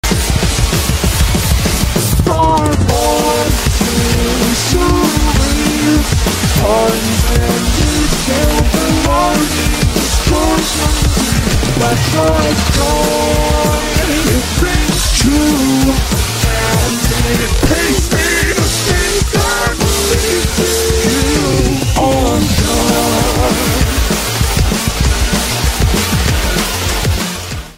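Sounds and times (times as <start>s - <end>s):
drum remix music: 0.0s - 27.7s.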